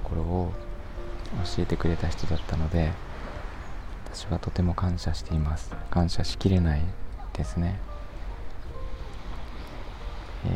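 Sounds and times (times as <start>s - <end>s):
ocean waves: 0.0s - 10.5s
wind: 0.0s - 10.5s
speech: 1.4s - 3.1s, 4.1s - 7.9s.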